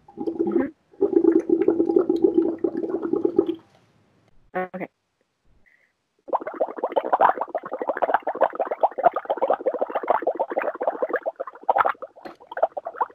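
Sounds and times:
blowing bubbles through straw into water: 0.0 - 3.6, 6.3 - 13.1.

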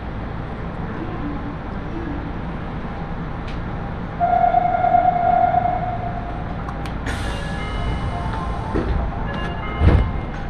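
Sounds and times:
Aonami Line and Higashiyama Line train car rumbling: 0.0 - 10.4
sustained ringing tone: 4.2 - 6.4.

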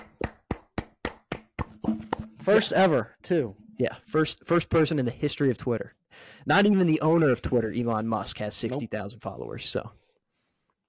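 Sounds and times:
hand claps: 0.0 - 2.3
speech: 2.4 - 10.0.

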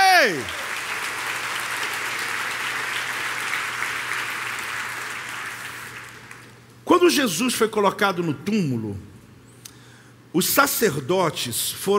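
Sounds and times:
audience applause: 0.0 - 6.6
speech: 0.3 - 0.6, 7.1 - 9.1, 10.3 - 11.9.

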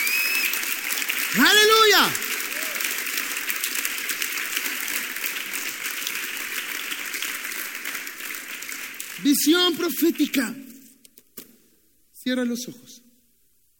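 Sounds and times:
audience applause: 0.0 - 9.8
speech: 1.3 - 2.2, 9.2 - 10.7, 12.2 - 13.0.

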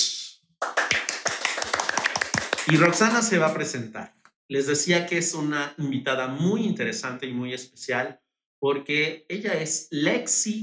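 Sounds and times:
applause: 0.6 - 3.6
speech: 2.7 - 10.6.

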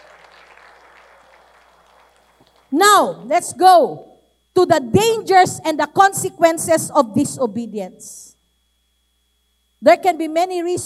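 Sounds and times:
audience clapping in praise: 0.0 - 2.7
speech: 2.7 - 8.4, 9.8 - 10.8.

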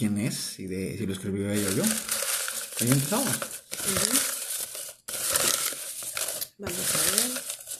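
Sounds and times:
speech: 0.0 - 2.2, 2.8 - 4.3, 6.6 - 7.3
folded slip of paper crinkling as it is unfolded: 1.5 - 7.7.

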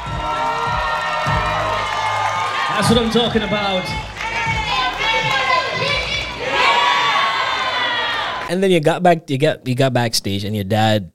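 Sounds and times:
crowd cheering and whooping: 0.0 - 8.5
speech: 2.8 - 4.1, 8.5 - 11.1.

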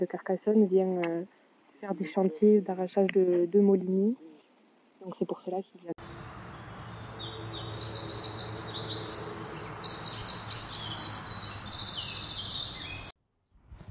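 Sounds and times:
speech: 0.0 - 4.4, 5.0 - 5.9
birds singing in a dense chorus: 6.0 - 13.1.

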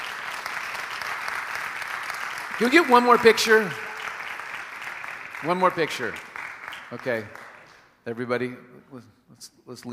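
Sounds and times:
audience applauding: 0.0 - 7.9
speech: 2.6 - 3.8, 5.4 - 6.3, 6.9 - 7.4, 8.0 - 9.9.

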